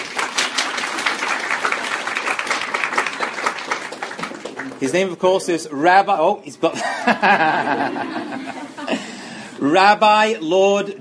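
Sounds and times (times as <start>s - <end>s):
audience applause: 0.0s - 5.2s
speech: 4.8s - 10.9s
laughter: 6.7s - 9.4s.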